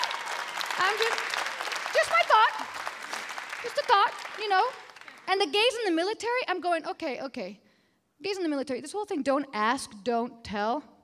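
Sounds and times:
audience applause: 0.0 - 5.5
speech: 0.9 - 2.8, 3.6 - 7.6, 8.2 - 10.9.

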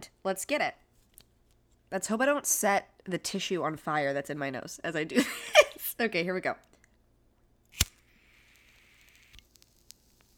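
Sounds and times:
speech: 0.2 - 0.8, 1.9 - 6.7
lighter click: 7.7 - 10.3
pipe bowl sizzling as it is lit: 7.7 - 10.3.

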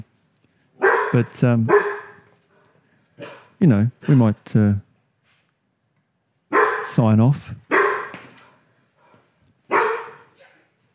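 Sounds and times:
dog yelping: 0.8 - 2.2, 6.5 - 6.9, 7.7 - 8.2, 9.7 - 10.4
dog barking: 0.8 - 2.3, 3.2 - 3.5, 6.5 - 6.9, 7.7 - 8.3, 9.7 - 10.7
speech: 1.1 - 1.9, 3.6 - 4.9, 6.9 - 7.6.

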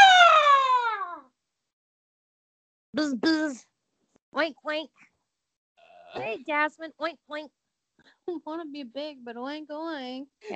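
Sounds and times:
person vocally imitating an osprey's screech: 0.0 - 1.2
speech: 3.0 - 3.7, 4.3 - 5.1, 6.1 - 7.6, 8.2 - 10.5.

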